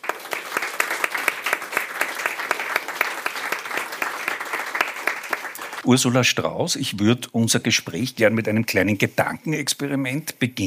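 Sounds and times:
audience applause: 0.0s - 5.8s
speech: 5.8s - 10.6s.

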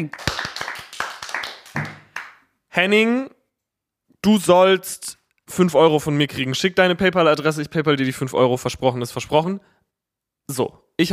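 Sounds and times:
speech: 0.0s - 0.3s, 2.8s - 3.4s, 4.2s - 9.8s, 10.5s - 11.1s
sparse half-hearted hand clapping: 0.0s - 2.4s.

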